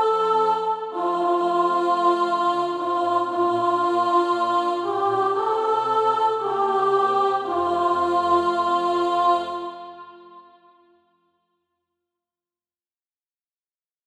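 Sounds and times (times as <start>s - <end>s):
soprano singing: 0.0s - 10.6s.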